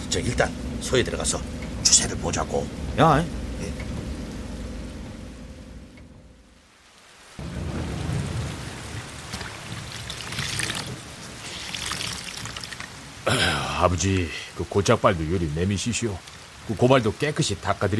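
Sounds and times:
heavy rain pouring: 0.0s - 17.9s
speech: 0.1s - 3.8s, 13.3s - 17.9s.

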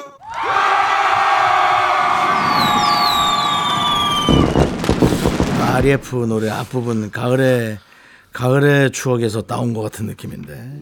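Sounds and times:
crowd cheering: 0.0s - 6.9s
speech: 5.8s - 10.8s.

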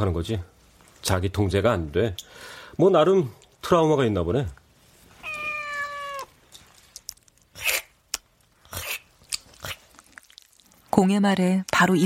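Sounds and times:
speech: 0.0s - 4.6s, 11.0s - 12.0s
cat meowing: 5.2s - 6.4s
crunchy chewing bursts: 7.3s - 10.8s.

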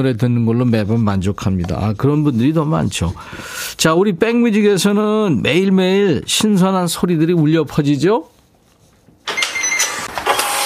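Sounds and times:
speech: 0.0s - 8.3s
card terminal printing a receipt: 9.3s - 10.6s.

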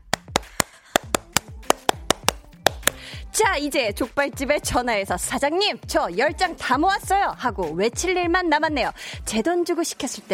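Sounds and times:
hand clapping: 0.0s - 3.0s
speech: 3.4s - 10.3s.

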